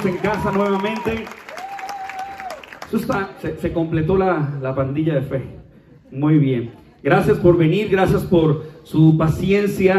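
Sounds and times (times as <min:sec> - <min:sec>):
speech: 0:00.0 - 0:01.5, 0:02.9 - 0:09.9
audience applause: 0:00.0 - 0:03.4.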